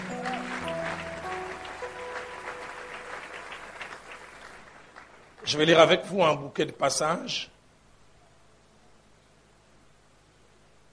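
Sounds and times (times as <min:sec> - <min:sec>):
church congregation applauding at a morning service: 0:00.0 - 0:06.1
speech: 0:05.5 - 0:07.5.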